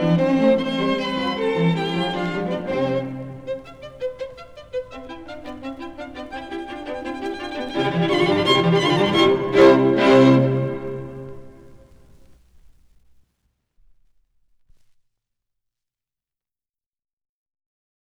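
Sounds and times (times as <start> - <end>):
string quartet: 0.0 - 12.0.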